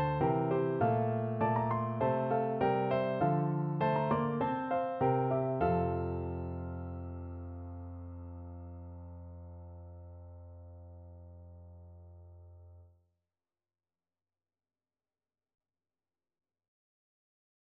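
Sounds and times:
piano duet: 0:00.0 - 0:12.8.

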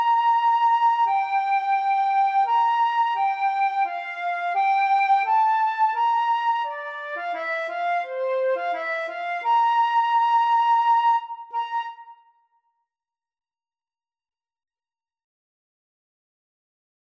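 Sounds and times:
flute duet: 0:00.0 - 0:12.4.

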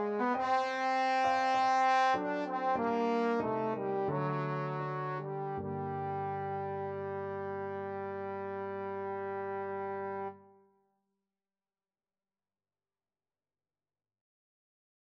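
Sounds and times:
trombone playing a concerto second movement in A minor: 0:00.0 - 0:10.4.

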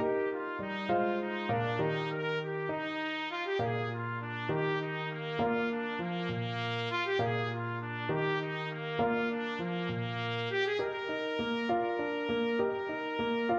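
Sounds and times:
trumpet playing a gigue in G major: 0:00.2 - 0:13.5.

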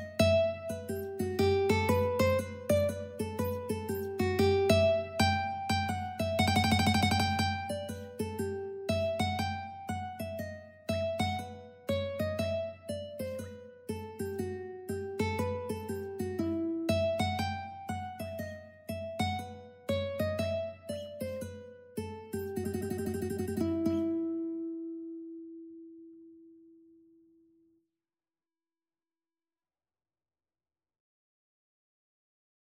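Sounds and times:
ukulele: 0:00.0 - 0:21.4, 0:22.0 - 0:25.9.

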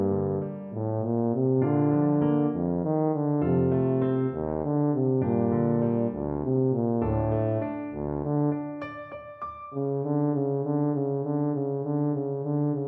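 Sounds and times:
tuba playing a classical piano piece: 0:00.0 - 0:08.8, 0:09.7 - 0:12.8.

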